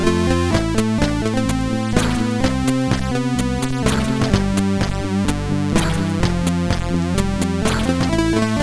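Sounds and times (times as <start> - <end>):
MOS6581 SID chip synthesizer sound: 0.1 - 5.0, 5.8 - 8.5.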